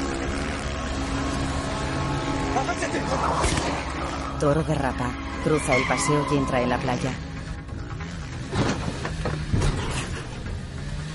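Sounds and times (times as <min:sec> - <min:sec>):
motorcycle engine accelerating along a seaside promenade in a film car chase: 0:00.0 - 0:04.4, 0:07.2 - 0:11.1
speech: 0:02.6 - 0:07.2.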